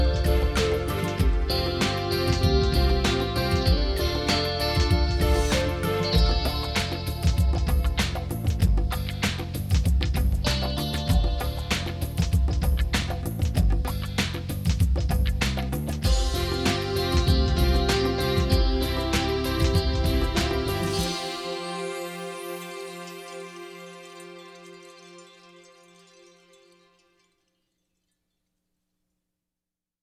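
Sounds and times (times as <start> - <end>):
twangy mystery music: 0.0 - 21.3.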